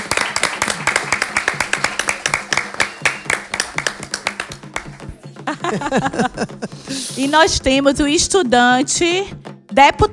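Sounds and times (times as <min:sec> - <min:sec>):
audience clapping: 0:00.0 - 0:07.3
laughter: 0:00.0 - 0:07.6
speech: 0:05.6 - 0:10.1.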